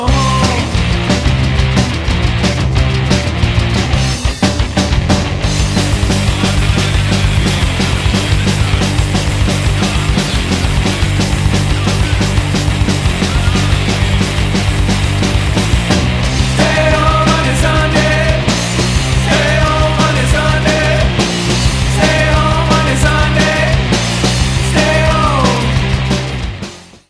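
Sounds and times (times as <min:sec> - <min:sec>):
wrecked chords: 0:00.1 - 0:26.9.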